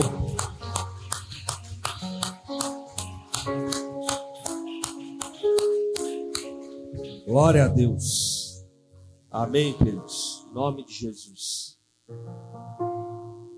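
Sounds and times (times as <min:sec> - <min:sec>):
audience clapping in rhythm: 0:00.0 - 0:06.8
keyboard music with held chords: 0:00.0 - 0:11.3, 0:12.1 - 0:13.5
speech: 0:07.3 - 0:08.3, 0:09.3 - 0:12.9.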